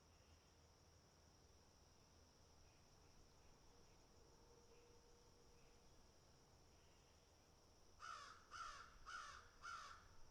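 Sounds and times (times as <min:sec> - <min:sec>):
crows cawing harshly: 0:08.0 - 0:10.1.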